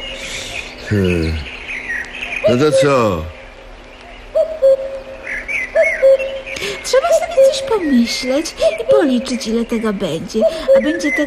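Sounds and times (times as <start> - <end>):
cuckoo calling: 0.0 - 11.2
speech: 0.9 - 1.5, 2.4 - 3.4, 6.8 - 11.2.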